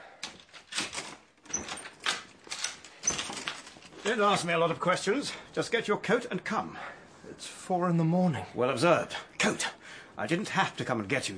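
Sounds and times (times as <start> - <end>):
door being opened: 0.3 - 4.1
speech: 4.0 - 11.3.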